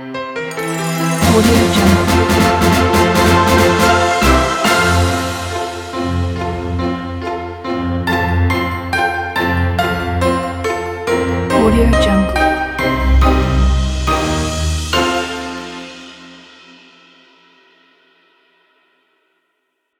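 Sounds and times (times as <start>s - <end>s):
playful chase music: 0.5s - 16.4s.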